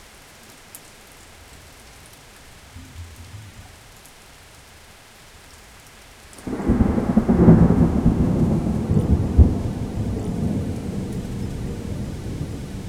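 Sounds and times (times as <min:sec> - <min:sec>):
rain in a jungle: 0:00.0 - 0:12.8.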